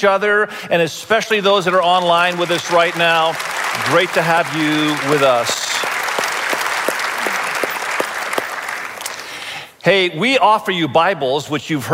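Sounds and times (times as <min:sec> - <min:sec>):
speech: 0:00.0 - 0:05.6, 0:09.8 - 0:11.9
church congregation applause: 0:01.4 - 0:09.6.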